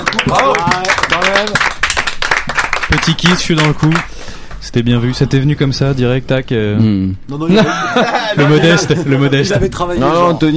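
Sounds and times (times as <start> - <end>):
audience applause: 0.0 - 4.1
speech: 0.3 - 1.8, 2.9 - 10.5
laughter: 7.5 - 9.7.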